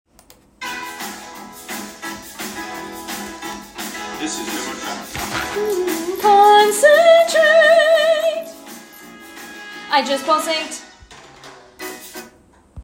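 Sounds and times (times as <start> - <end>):
tenor singing: 4.4 - 8.5.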